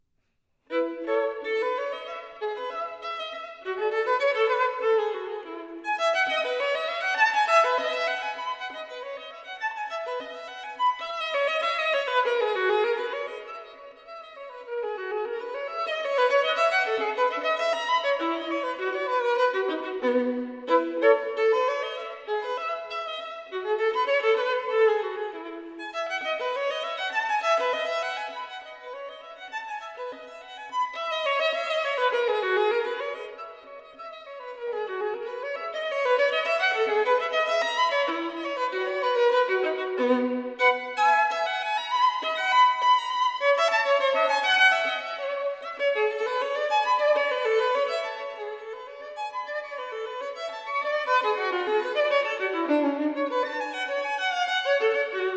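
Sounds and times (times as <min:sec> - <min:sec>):
solo violin piece: 0:00.6 - 0:55.3.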